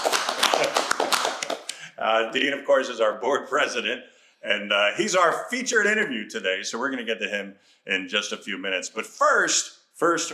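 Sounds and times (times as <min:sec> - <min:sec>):
audience applause: 0:00.0 - 0:01.7
speech: 0:02.1 - 0:10.3.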